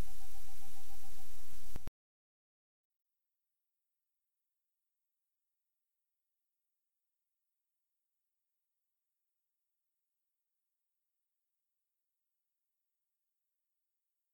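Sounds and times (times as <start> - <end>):
owl hoots in broadcast recording for a northern owl survey: 0.0 - 1.9.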